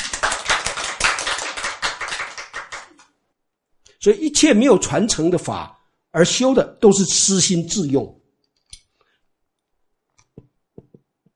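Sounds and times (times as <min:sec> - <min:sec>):
audience clapping: 0:00.0 - 0:03.2
speech: 0:04.0 - 0:08.2.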